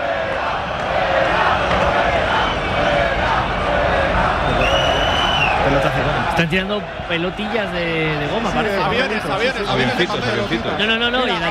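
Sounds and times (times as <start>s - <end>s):
packed football stadium crowd roaring and cheering: 0.0s - 11.4s
whistles: 4.4s - 5.7s
speech: 6.4s - 11.4s.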